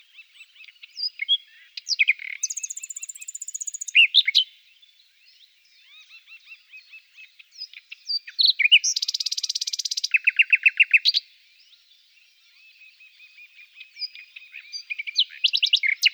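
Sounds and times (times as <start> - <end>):
Common nightingale singing: 0.0 - 4.8, 5.4 - 11.3, 12.5 - 16.1.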